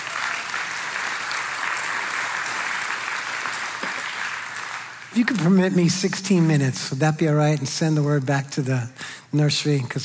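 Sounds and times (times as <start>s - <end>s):
crowd clapping: 0.0s - 5.8s
speech: 5.2s - 10.0s.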